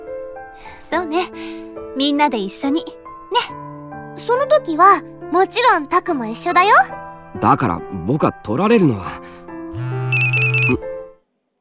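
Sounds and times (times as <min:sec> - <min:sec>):
speech: 0:00.6 - 0:03.6, 0:04.3 - 0:09.2, 0:10.7 - 0:10.9
phone notification tone for an incoming email: 0:09.9 - 0:10.8.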